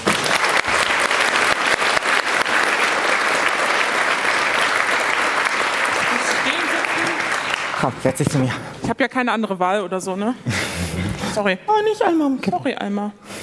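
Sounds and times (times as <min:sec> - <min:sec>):
audience applause: 0:00.0 - 0:08.5
speech: 0:07.8 - 0:13.2.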